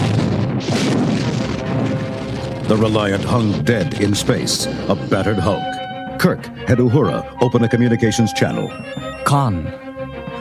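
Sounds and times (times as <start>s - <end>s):
loud continuous rumble: 0.0s - 6.1s
photon torpedoes exploding against a starship: 0.0s - 6.5s
speech: 2.7s - 9.8s.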